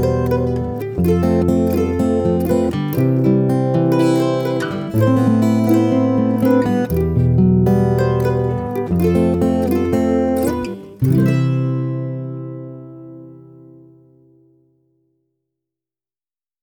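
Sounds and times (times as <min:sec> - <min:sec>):
guitar and mandolin duet: 0:00.0 - 0:14.6.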